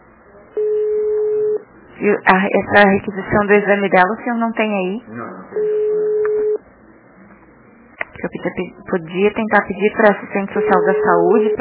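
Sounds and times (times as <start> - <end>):
ringback tone of a phone call to a civil registry office in Florianópolis: 0.6 - 1.6, 5.6 - 6.6, 10.6 - 11.5
speech: 2.0 - 6.0, 8.4 - 11.5.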